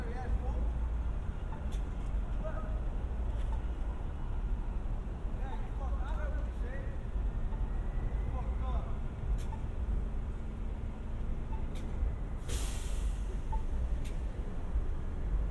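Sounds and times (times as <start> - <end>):
traffic rumble on San Diego streets: 0.0 - 15.5
short hiss: 12.5 - 13.4.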